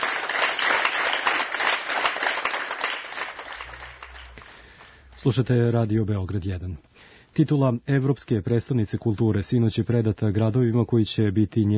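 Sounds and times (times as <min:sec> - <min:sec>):
long applause at a farewell ceremony in a studio: 0:00.0 - 0:05.1
speech: 0:05.2 - 0:11.7.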